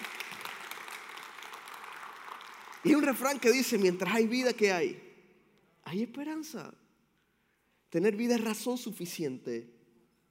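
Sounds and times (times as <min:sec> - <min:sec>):
audience applause: 0:00.0 - 0:03.1
speech: 0:02.8 - 0:05.0, 0:05.9 - 0:06.8, 0:07.9 - 0:09.8.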